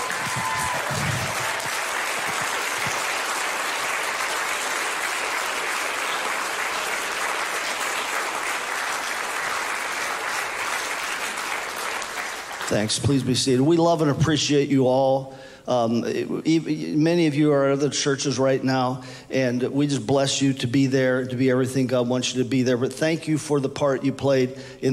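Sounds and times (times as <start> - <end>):
audience applauding: 0.0 - 13.0
speech: 12.7 - 24.9.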